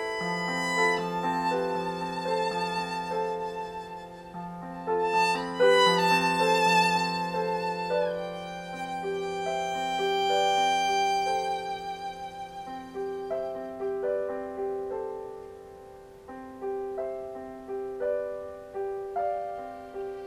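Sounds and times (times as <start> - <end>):
violin improvisation: 0.0 - 14.0
piano improvisation: 0.0 - 20.2.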